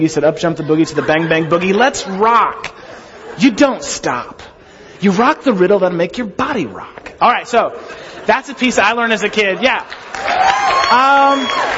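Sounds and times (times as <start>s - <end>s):
speech: 0.0s - 2.8s, 3.4s - 11.7s
laughter: 0.0s - 5.4s, 7.5s - 10.4s
audience applause: 9.0s - 11.7s
raised voices and whoops: 10.1s - 11.7s.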